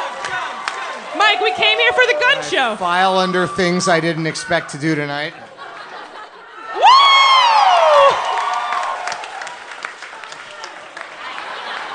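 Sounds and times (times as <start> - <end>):
crowd clapping: 0.0 - 2.8, 6.9 - 11.9
scattered shouts: 1.0 - 2.8
loud high whoop: 1.1 - 2.8, 6.8 - 9.3
speech: 1.2 - 5.4
laughter: 5.3 - 7.0, 11.1 - 11.9.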